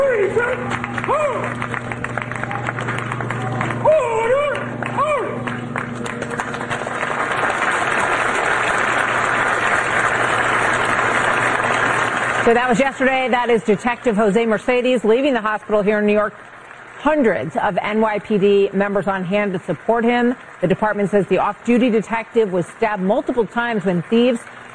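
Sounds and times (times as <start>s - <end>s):
speech: 0.0s - 2.0s, 12.5s - 24.7s
police officers' voices and cheering: 0.0s - 5.7s
hundreds of police officers applauding a detective leaving a hospital in New York: 0.0s - 24.7s.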